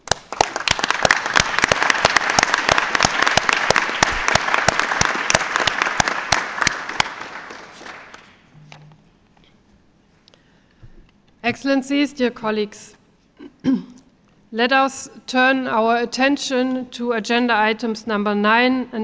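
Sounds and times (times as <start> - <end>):
audience applause: 0.0 - 8.4
speech: 11.5 - 13.0, 14.5 - 19.0.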